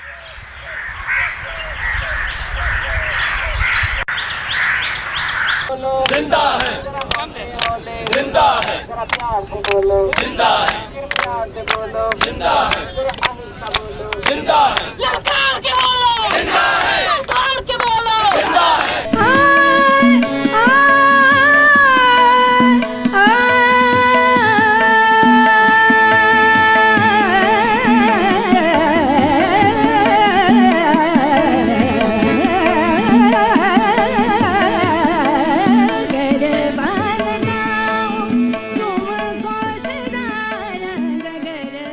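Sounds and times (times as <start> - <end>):
street noise: 0.0 - 41.9
protesters chanting slogans: 5.7 - 19.8.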